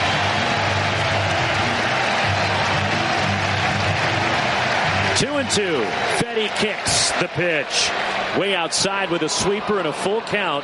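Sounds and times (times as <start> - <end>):
baseball stadium crowd in Chicago rising: 0.0 - 10.6
speech: 5.2 - 10.6.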